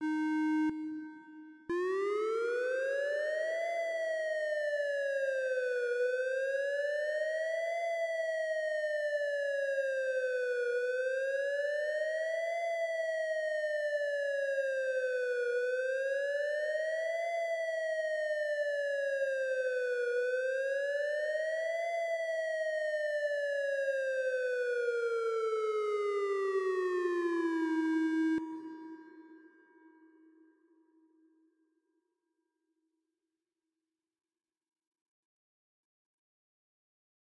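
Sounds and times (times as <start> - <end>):
siren: 0.0 - 28.6.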